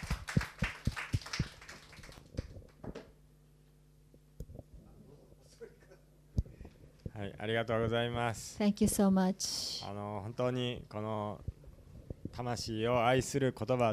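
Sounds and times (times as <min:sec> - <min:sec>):
group applause in thanks: 0:00.0 - 0:03.1
quiet hum: 0:00.0 - 0:13.9
speech: 0:07.2 - 0:11.5, 0:12.4 - 0:13.9.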